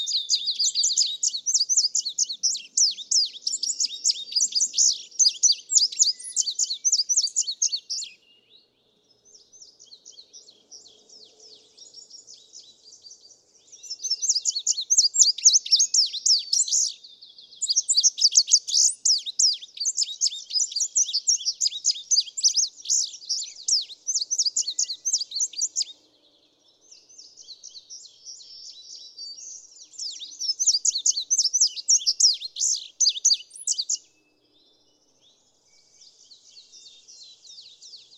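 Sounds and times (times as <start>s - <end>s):
Indigo Bunting singing: 0.0s - 38.1s.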